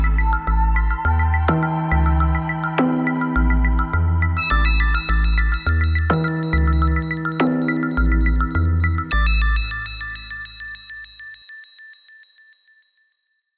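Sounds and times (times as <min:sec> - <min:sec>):
jingle: 0:00.0 - 0:10.0.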